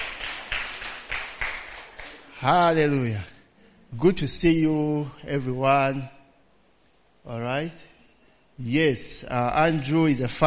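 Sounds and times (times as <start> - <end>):
hand clapping for children at a church service: 0.0 - 2.4
speech: 2.4 - 3.3, 3.9 - 6.2, 7.2 - 7.9, 8.6 - 10.4.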